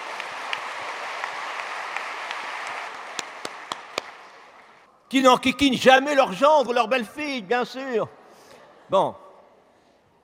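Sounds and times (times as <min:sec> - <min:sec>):
audience applause: 0:00.0 - 0:04.8
speech: 0:05.1 - 0:08.2, 0:08.9 - 0:09.2.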